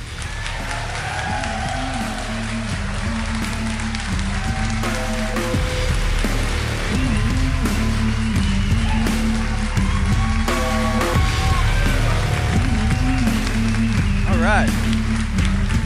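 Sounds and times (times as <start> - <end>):
crowd clapping and cheering: 0.0 - 15.8.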